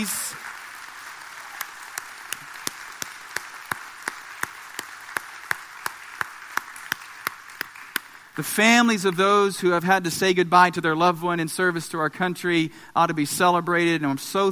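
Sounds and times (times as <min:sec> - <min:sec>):
speech: 0:00.0 - 0:00.4, 0:08.4 - 0:14.5
audience applause: 0:00.0 - 0:08.4
sharp evenly spaced clap: 0:00.0 - 0:09.3.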